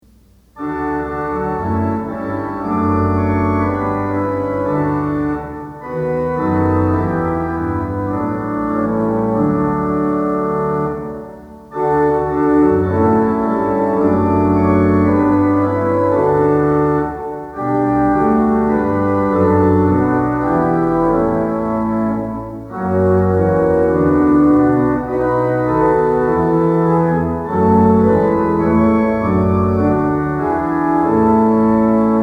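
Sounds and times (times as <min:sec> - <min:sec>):
organ music for worship services: 0:00.4 - 0:32.2.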